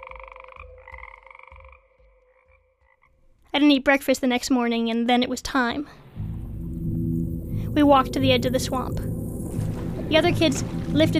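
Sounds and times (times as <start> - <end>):
frogs croaking in a swamp at night: 0.0 - 3.3, 6.1 - 11.1
speech: 3.5 - 6.0, 7.8 - 11.1.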